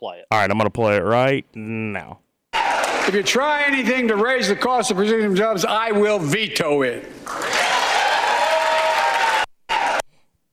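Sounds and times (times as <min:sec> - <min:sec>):
speech: 0:00.0 - 0:07.8
audience applauding in played recording: 0:02.6 - 0:03.3, 0:07.2 - 0:10.0.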